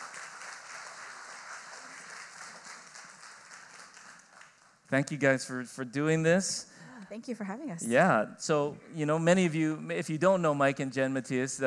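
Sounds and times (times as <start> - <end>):
church audience applause welcoming a couple onto the stage: 0.0 - 4.8
speech: 4.9 - 11.6.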